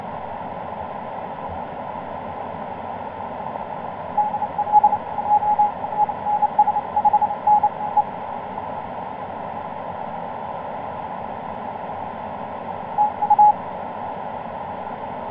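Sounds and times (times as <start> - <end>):
CW Morse code tones on the 17m band: 4.2 - 8.0, 12.9 - 13.6.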